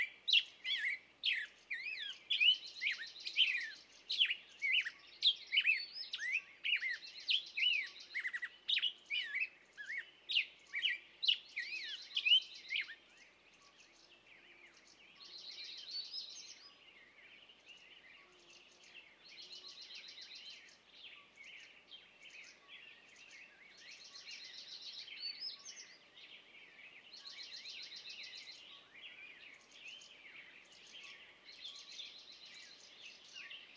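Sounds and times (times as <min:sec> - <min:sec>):
birds in the morning on a meadow: 0:00.0 - 0:33.7.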